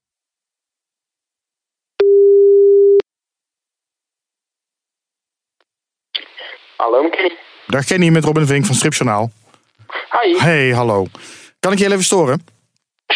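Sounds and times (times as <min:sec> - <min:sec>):
telephone ringback tone while calling: 0:02.0 - 0:03.0
speech: 0:07.2 - 0:09.5, 0:10.1 - 0:13.1.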